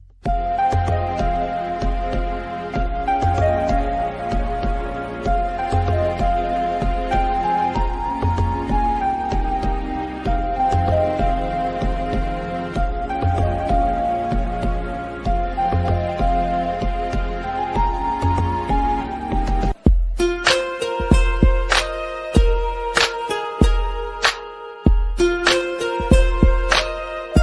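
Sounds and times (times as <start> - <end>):
Tamil sad background music ringtone: 0.3 - 27.4.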